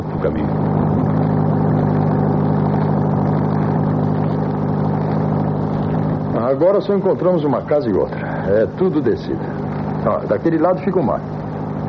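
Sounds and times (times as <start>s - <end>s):
car engine droning while driving: 0.0s - 11.8s
speech: 0.2s - 0.6s, 6.5s - 11.4s.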